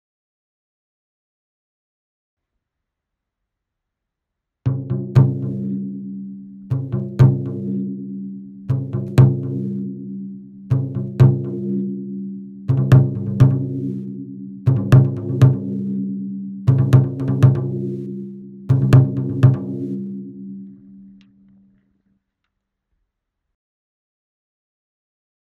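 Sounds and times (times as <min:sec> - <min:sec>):
taiko drums: 0:04.7 - 0:05.7, 0:06.7 - 0:07.8, 0:08.7 - 0:09.8, 0:10.7 - 0:11.8, 0:12.7 - 0:14.0, 0:14.7 - 0:16.0, 0:16.7 - 0:20.2.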